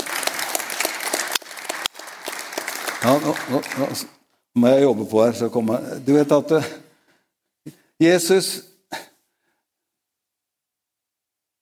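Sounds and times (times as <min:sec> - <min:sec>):
crowd applauding: 0:00.0 - 0:04.2
speech: 0:03.0 - 0:06.8, 0:07.6 - 0:09.0.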